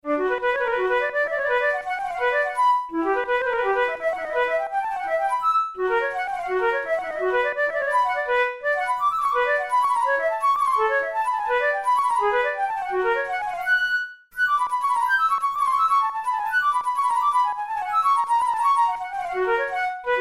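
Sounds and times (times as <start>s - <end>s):
studies for the Boehm flute: 0.0s - 20.2s.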